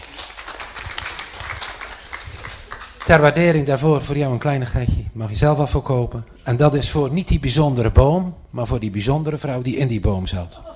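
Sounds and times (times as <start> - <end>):
audience applause after a presentation: 0.0 - 3.3
speech: 3.1 - 10.7.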